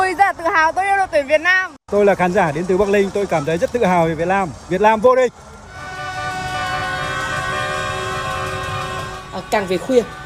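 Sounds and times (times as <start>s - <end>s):
rumbling traffic of convoys parading through city streets at night: 0.0s - 10.2s
speech: 0.5s - 5.5s, 9.5s - 10.2s
horns honking from convoys of vehicles celebrating a championship win: 5.7s - 10.2s.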